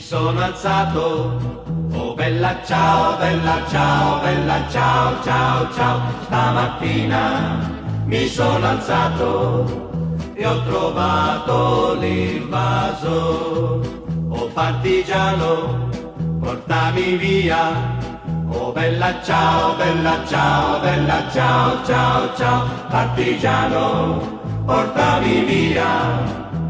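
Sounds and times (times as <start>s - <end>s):
Italian folk song ringtone: 0.1s - 26.6s.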